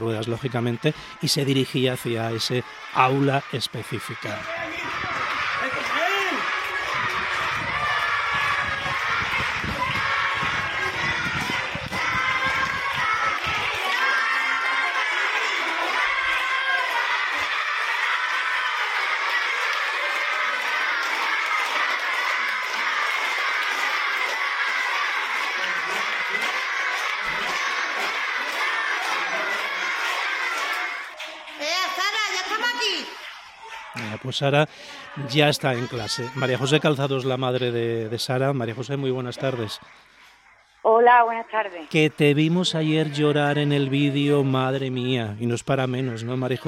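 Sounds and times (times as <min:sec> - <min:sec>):
speech: 0:00.0 - 0:05.1, 0:34.3 - 0:40.2, 0:40.9 - 0:46.6
schoolchildren cheering and shouting: 0:00.0 - 0:34.2, 0:35.0 - 0:40.4, 0:45.7 - 0:46.6
children laughing: 0:04.2 - 0:31.1.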